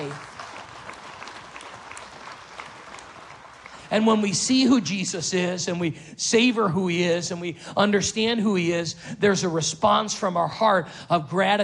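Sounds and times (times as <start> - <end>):
church congregation clapping: 0.0 - 4.7
speech: 3.9 - 11.6.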